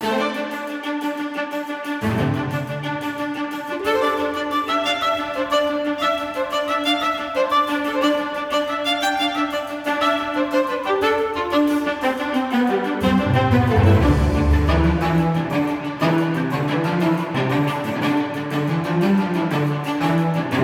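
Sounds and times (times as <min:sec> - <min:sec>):
background music: 0:00.0 - 0:20.6.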